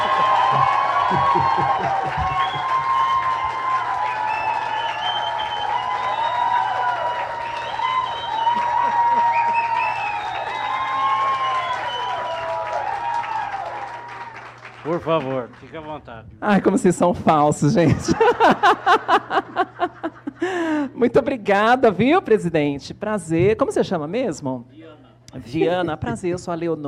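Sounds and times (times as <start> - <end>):
laughter: 0.0 - 3.4, 8.2 - 10.2, 16.6 - 20.9
audience applause and cheering: 0.0 - 16.0
speech: 1.1 - 2.7, 15.0 - 19.4, 21.0 - 26.8.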